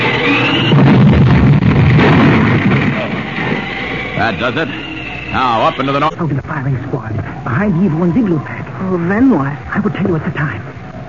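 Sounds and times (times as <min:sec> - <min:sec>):
explosion of an iceberg packed with explosives being smashed: 0:00.0 - 0:04.8
speech: 0:04.3 - 0:10.7.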